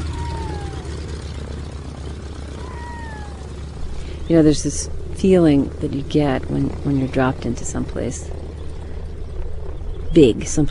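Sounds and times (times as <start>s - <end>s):
faint gliding whistle-like calls: 0.0s - 1.0s
float plane engine taxiing: 0.0s - 10.6s
speech: 4.3s - 8.4s, 10.1s - 10.6s.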